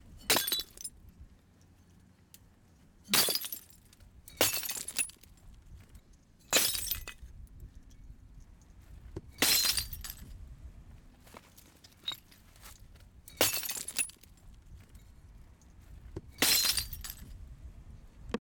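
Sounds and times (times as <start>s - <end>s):
glass bottles breaking: 0.3s - 0.9s, 3.1s - 3.8s, 4.4s - 5.2s, 6.5s - 7.2s, 9.4s - 10.2s, 13.4s - 14.2s, 16.4s - 17.3s.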